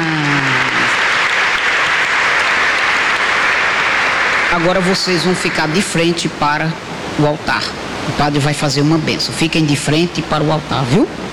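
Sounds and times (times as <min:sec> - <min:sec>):
loud applause at a church ceremony before the altar: 0:00.0 - 0:06.5
speech: 0:04.6 - 0:11.3.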